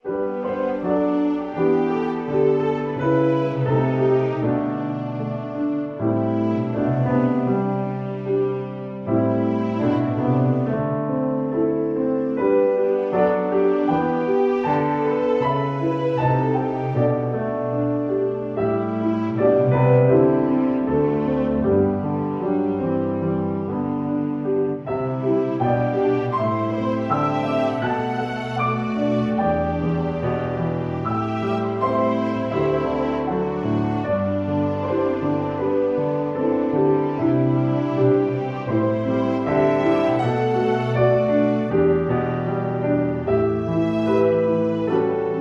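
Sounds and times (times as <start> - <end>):
strings: 0.0 - 45.4.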